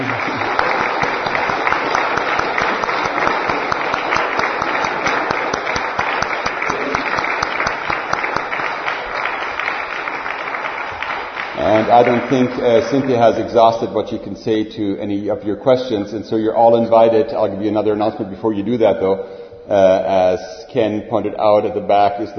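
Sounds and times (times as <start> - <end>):
audience applause: 0.0 - 13.8
speech: 12.0 - 22.3.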